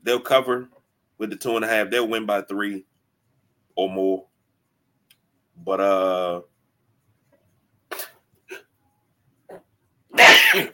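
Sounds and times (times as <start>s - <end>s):
speech: 0.1s - 2.9s, 3.8s - 4.3s, 5.6s - 6.5s
person sneezing: 7.9s - 8.7s, 10.2s - 10.7s.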